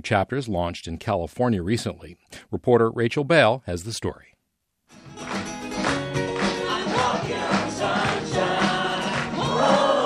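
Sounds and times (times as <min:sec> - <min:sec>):
speech: 0:00.0 - 0:05.0
audience clapping along: 0:05.1 - 0:10.0
many voices singing together over music: 0:06.4 - 0:10.0.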